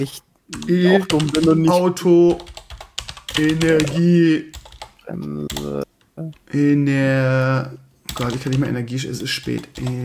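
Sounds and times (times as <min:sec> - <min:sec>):
speech: 0:00.0 - 0:02.5, 0:03.4 - 0:10.0
computer keyboard keystrokes typing a word: 0:00.5 - 0:06.5, 0:08.1 - 0:10.0.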